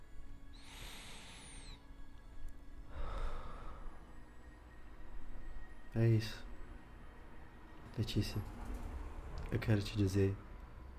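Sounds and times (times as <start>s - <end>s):
low hiss: 0.0s - 10.9s
person breathing deeply: 0.5s - 2.0s, 2.8s - 4.2s
speech: 6.0s - 6.5s, 8.0s - 8.6s, 9.5s - 10.4s.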